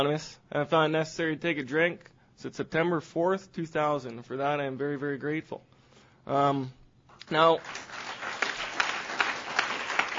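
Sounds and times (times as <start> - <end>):
speech: 0.0 - 5.7, 6.3 - 8.1
audience applause: 7.6 - 10.1.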